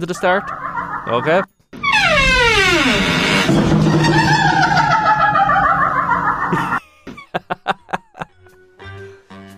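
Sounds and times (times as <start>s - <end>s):
speech: 0.0s - 1.5s, 2.8s - 4.2s
kitchen door creaking open: 1.8s - 6.5s
laughter: 4.5s - 8.3s.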